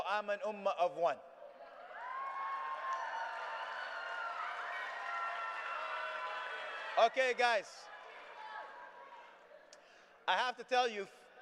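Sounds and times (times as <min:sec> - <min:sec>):
speech: 0:00.1 - 0:01.3, 0:07.0 - 0:07.9, 0:10.3 - 0:11.3
voices cheering: 0:01.7 - 0:09.3
audience clapping after a poem: 0:01.9 - 0:07.0.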